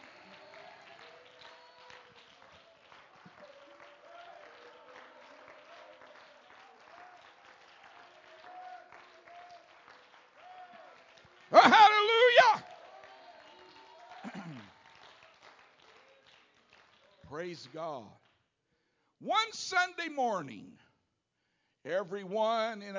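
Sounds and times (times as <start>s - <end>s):
cheering and sustained voices: 0.0s - 16.2s
audience clapping hands: 0.0s - 18.5s
speech: 17.4s - 18.2s, 19.2s - 20.8s, 21.8s - 22.9s.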